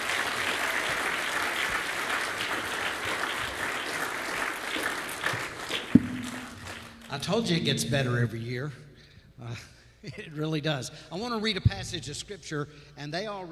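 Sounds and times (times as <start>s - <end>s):
crowd applause: 0.0s - 8.6s
speech: 7.2s - 8.8s, 9.5s - 13.5s.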